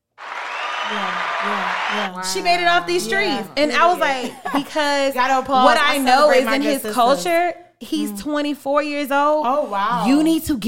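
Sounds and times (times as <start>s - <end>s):
applause: 0.0s - 2.1s
speech: 0.9s - 10.6s.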